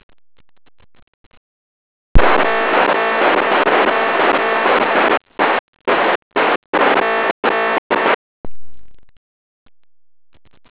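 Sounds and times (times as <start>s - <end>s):
signal sound: 2.2s - 9.2s.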